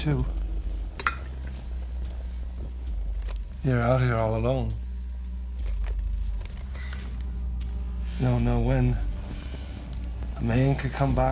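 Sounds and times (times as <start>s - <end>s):
speech: 0.0s - 0.4s, 3.6s - 4.8s, 8.2s - 9.1s, 10.4s - 11.2s
steady low hum: 0.0s - 11.2s
glass cover lifted off a burning oil lamp: 1.0s - 1.4s.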